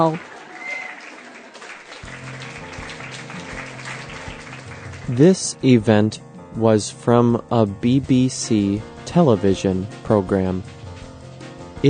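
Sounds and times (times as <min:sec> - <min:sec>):
speech: 0:00.0 - 0:00.3, 0:05.1 - 0:10.8
crowd clapping: 0:00.0 - 0:05.4, 0:10.6 - 0:11.8.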